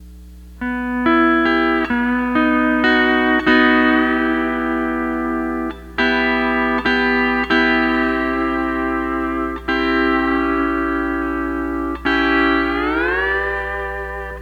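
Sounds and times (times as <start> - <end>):
12-string lap guitar playing: 0.6 - 14.4.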